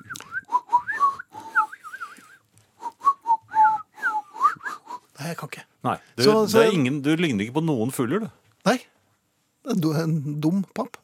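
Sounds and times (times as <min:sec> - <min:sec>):
person trying to whistle: 0:00.0 - 0:05.2
speech: 0:05.3 - 0:08.8, 0:09.7 - 0:11.0.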